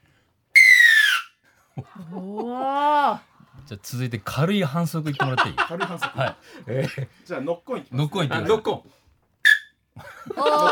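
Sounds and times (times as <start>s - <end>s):
rugby referee's kickoff whistle blast: 0.6s - 1.3s, 9.4s - 9.8s
laughter: 1.8s - 2.8s, 5.0s - 7.1s, 10.0s - 10.6s
speech: 1.8s - 9.0s, 10.0s - 10.6s.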